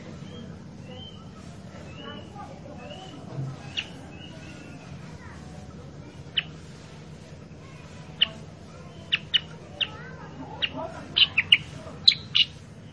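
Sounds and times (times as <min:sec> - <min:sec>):
Sooty-headed bulbul calls: 0:01.9 - 0:04.9, 0:06.3 - 0:06.6, 0:08.1 - 0:12.9.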